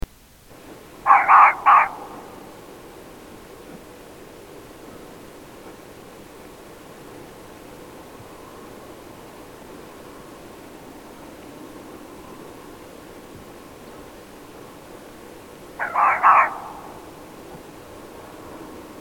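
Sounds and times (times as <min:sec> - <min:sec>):
fox giving a harsh hoarse call: 0:01.0 - 0:02.7, 0:15.8 - 0:17.4.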